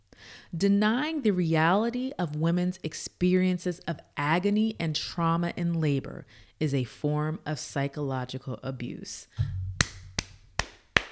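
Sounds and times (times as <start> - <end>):
speech: 0.5 - 9.6
hands clapping: 9.4 - 11.1.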